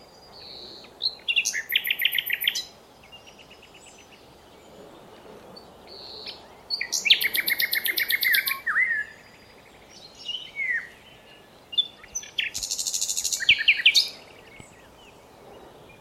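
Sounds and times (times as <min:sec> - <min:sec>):
Common nightingale singing: 0:00.0 - 0:15.9.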